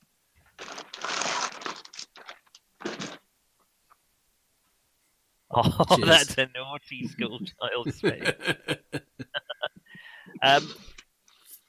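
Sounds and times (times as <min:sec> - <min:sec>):
bag crackling: 0:00.4 - 0:03.2
speech: 0:05.5 - 0:09.1, 0:10.4 - 0:10.9
laughter: 0:05.6 - 0:09.8.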